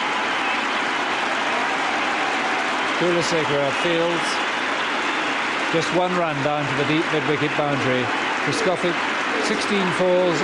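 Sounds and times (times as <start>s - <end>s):
cricket crowd cheering and applauding a century: 0.0s - 10.4s
speech: 3.0s - 4.4s, 5.7s - 10.4s.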